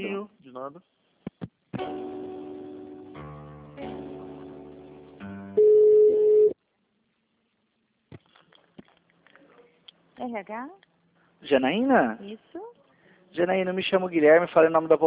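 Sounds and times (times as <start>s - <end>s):
speech: 0.6s - 1.0s, 10.3s - 15.0s
telephone line tones while a call is transferred: 5.6s - 6.6s.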